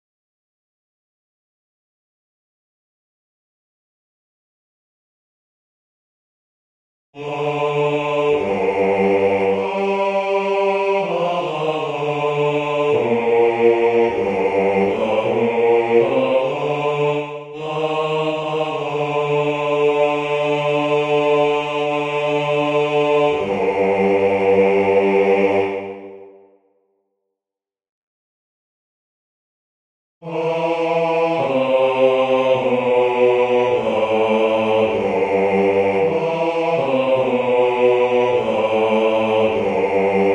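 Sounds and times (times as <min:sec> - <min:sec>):
bass part of a chorale: 0:07.2 - 0:26.6, 0:30.2 - 0:40.3.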